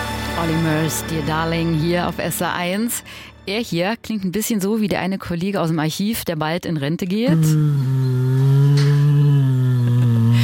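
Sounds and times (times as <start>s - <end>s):
speech: 0.4s - 8.2s
Asiatic black bear humming contentedly: 7.3s - 10.4s.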